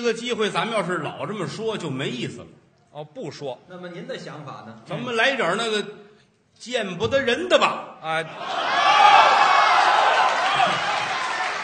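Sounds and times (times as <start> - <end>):
speech: 0.0 - 9.4
audience applause: 8.5 - 11.6.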